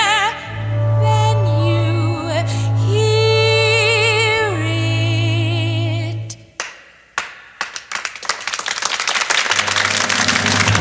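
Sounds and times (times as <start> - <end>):
low tone humming: 0.0 - 6.5
crowd applause: 7.6 - 10.7.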